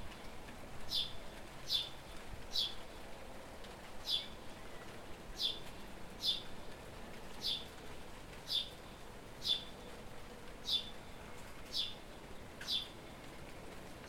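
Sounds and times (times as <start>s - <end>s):
house sparrow Passer domesticus chirping: 1.7s - 2.8s, 4.0s - 4.4s, 6.2s - 6.4s, 8.5s - 8.8s, 9.4s - 9.7s, 10.6s - 10.9s, 11.7s - 12.0s, 12.6s - 12.9s.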